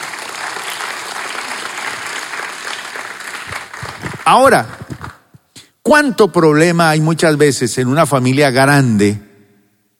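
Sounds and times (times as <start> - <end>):
audience applause: 0.0 - 5.2
speech: 4.3 - 4.8, 5.9 - 9.3.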